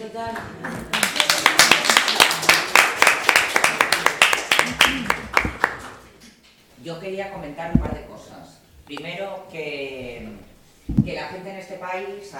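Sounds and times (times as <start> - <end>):
speech: 0.1 - 1.0, 6.8 - 12.3
audience clapping: 0.3 - 6.2.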